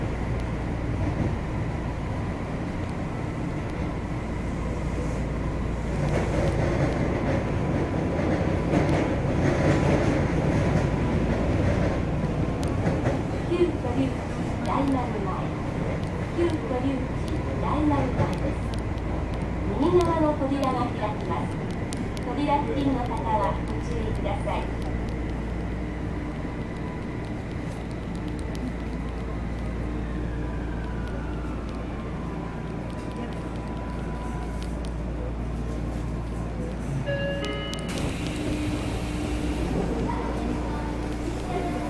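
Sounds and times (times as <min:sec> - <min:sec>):
5000 series subway train running on the Kobe Municipal Subway Kaigan Line: 0:00.0 - 0:41.8.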